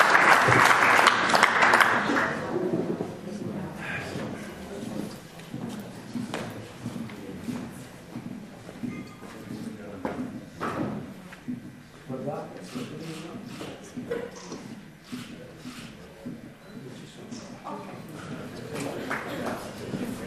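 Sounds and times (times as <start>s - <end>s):
audience applause: 0.0s - 2.8s.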